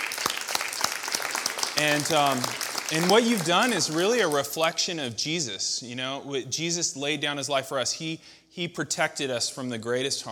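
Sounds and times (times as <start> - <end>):
crowd applauding: 0.0 - 4.7
speech: 1.8 - 10.3.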